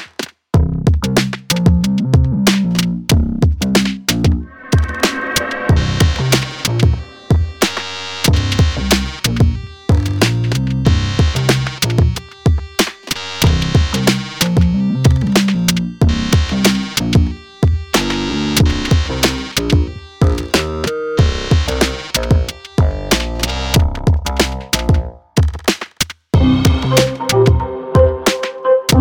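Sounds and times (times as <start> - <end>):
dark technoid groove: 0.6 - 25.2, 26.4 - 28.9.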